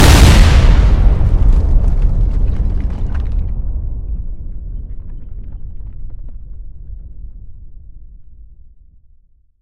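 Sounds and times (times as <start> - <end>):
deafening explosion on a battlefield: 0.0 - 7.4.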